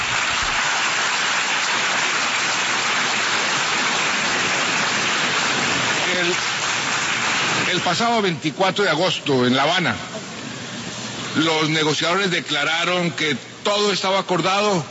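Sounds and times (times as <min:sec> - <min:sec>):
large crowd applauding at the UN General Assembly: 0:00.0 - 0:08.4
speech: 0:07.8 - 0:10.1, 0:11.4 - 0:14.9.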